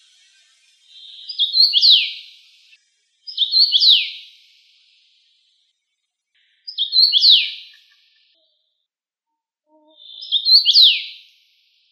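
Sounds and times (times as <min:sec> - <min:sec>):
common rosefinch whistled song: 0:00.0 - 0:05.6, 0:06.4 - 0:08.2, 0:10.0 - 0:11.4.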